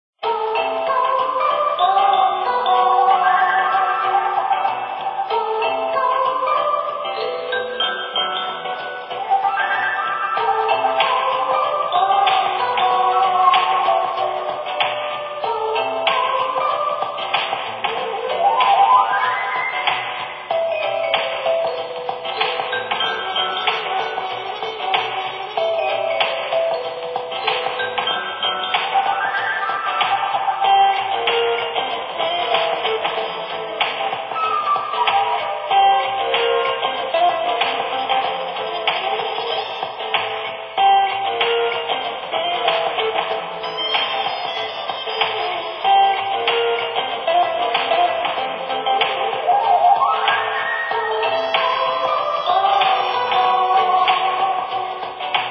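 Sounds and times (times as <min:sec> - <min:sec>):
ambient music: 0:00.2 - 0:55.4.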